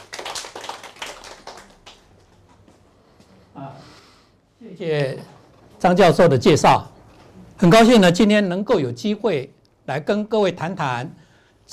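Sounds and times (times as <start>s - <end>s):
audience applause: 0.0s - 2.2s
speech: 4.7s - 6.9s, 7.6s - 11.7s.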